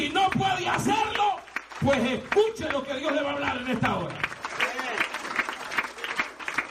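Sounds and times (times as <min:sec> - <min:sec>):
audience applause: 0:00.0 - 0:06.6
speech: 0:01.8 - 0:04.3.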